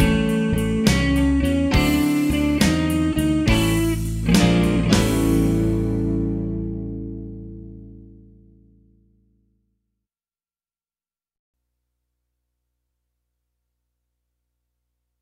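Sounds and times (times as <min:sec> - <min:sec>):
slow tempo blues music: 0:00.0 - 0:09.0.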